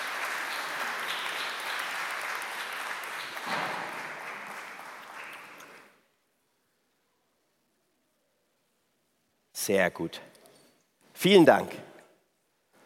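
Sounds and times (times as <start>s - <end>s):
audience applause: 0.0s - 6.0s
speech: 9.6s - 10.3s, 11.2s - 11.9s.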